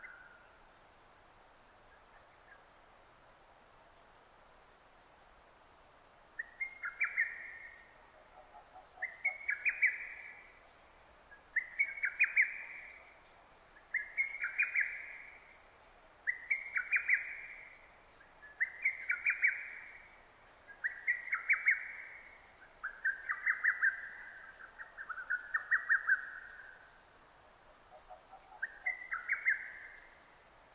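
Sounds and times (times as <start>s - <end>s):
faint low chirp from another bird: 0.0s - 30.7s
Lesser cuckoo singing: 6.4s - 7.9s, 11.4s - 13.1s, 13.8s - 15.4s, 16.2s - 17.8s, 18.4s - 20.0s, 20.7s - 26.8s, 28.4s - 30.2s.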